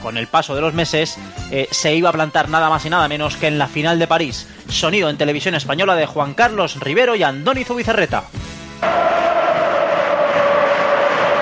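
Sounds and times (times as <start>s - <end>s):
speech: 0.0s - 9.1s
football supporters cheering at Valencia's Mestalla stadium: 8.8s - 11.3s.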